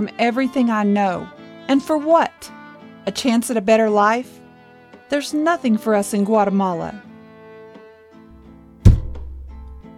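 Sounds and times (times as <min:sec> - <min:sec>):
speech: 0:00.0 - 0:04.4, 0:05.1 - 0:07.1
fist slammed down on a table: 0:08.9 - 0:09.7.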